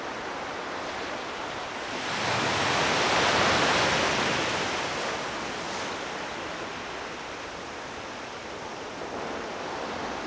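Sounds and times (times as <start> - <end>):
ocean waves on a pebble beach: 0.1 - 10.2.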